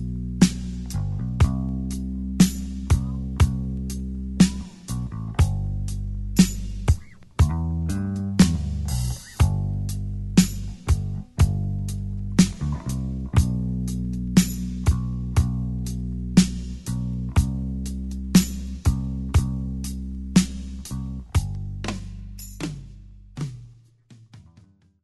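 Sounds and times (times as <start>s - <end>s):
bass in slow rock ballad: 0.0s - 24.9s.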